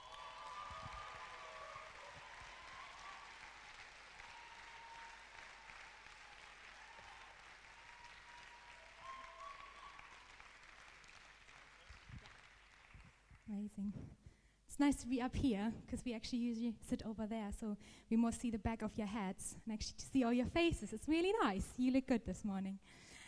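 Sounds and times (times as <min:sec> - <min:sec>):
audience applause: 0:00.0 - 0:13.5
speech: 0:13.5 - 0:23.2.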